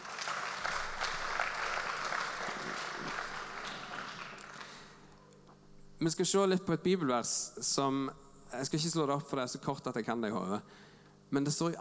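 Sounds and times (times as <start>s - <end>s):
audience applauding: 0.0s - 5.2s
speech: 6.0s - 11.7s.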